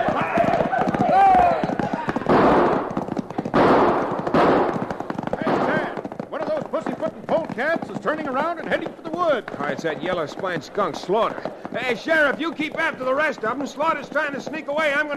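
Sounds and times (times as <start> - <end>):
people shouting: 0.0 - 2.9
rapid gunshots in a posse shootout: 0.0 - 14.5
hoofbeats: 0.0 - 15.1
speech: 8.2 - 15.1.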